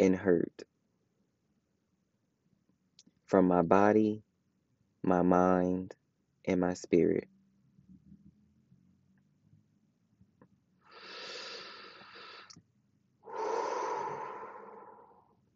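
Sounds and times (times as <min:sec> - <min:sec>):
speech: 0:00.0 - 0:00.7, 0:03.3 - 0:04.3, 0:05.0 - 0:07.3
deep breath: 0:10.9 - 0:12.6, 0:13.2 - 0:15.4.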